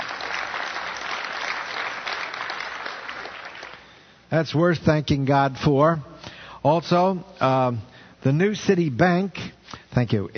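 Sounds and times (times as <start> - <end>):
audience applause: 0.0 - 4.0
speech: 4.3 - 10.3.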